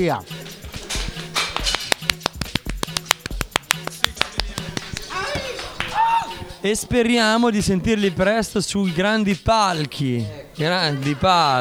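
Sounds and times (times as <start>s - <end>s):
speech: 0.0s - 0.4s, 6.6s - 11.5s
laughter: 0.0s - 11.5s
applause: 0.8s - 6.6s.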